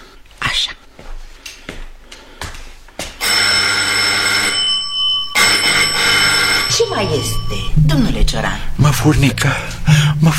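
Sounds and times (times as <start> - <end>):
speech: 0.6 - 0.8, 7.0 - 10.3
call bell ringing: 3.2 - 9.9.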